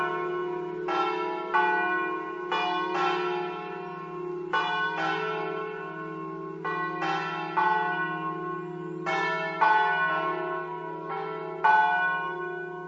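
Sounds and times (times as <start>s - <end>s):
bells ringing: 0.0s - 12.8s.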